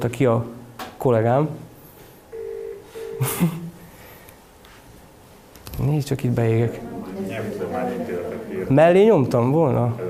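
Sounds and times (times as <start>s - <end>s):
speech: 0.0s - 1.7s, 3.2s - 3.6s, 5.8s - 10.0s
telephone tones as a call is dialed: 2.3s - 3.2s.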